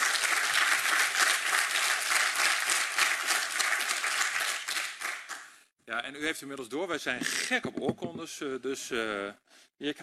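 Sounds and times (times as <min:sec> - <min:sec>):
loud sustained audience applause: 0:00.0 - 0:05.6
speech: 0:05.9 - 0:10.0.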